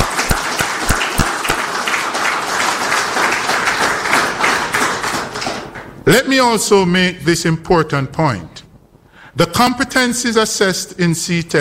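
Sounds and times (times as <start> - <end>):
crowd applauding: 0.0 - 5.9
speech: 6.1 - 8.6, 9.4 - 11.5.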